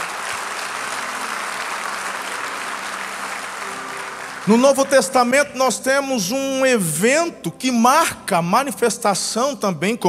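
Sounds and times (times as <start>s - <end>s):
audience applauding: 0.0s - 6.3s
speech: 4.4s - 10.0s.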